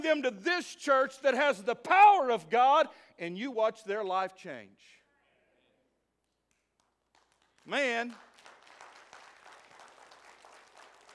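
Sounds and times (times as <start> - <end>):
speech: 0.0 - 5.0, 7.6 - 8.3
audience clapping: 6.4 - 11.1.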